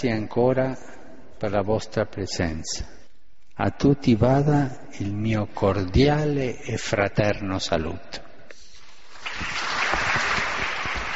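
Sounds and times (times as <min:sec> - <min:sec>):
speech: 0:00.0 - 0:03.0, 0:03.6 - 0:08.3, 0:09.4 - 0:09.6
large crowd standing applause in a big hall: 0:09.0 - 0:11.1.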